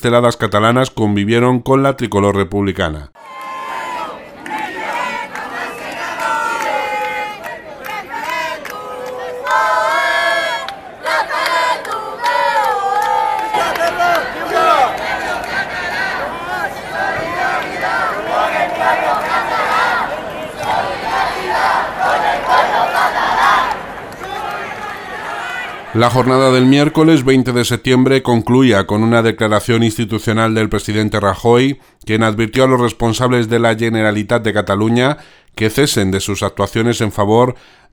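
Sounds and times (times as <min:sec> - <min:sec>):
speech: 0:00.0 - 0:03.4, 0:26.0 - 0:37.9
large protest crowd chanting and shouting: 0:03.2 - 0:27.4.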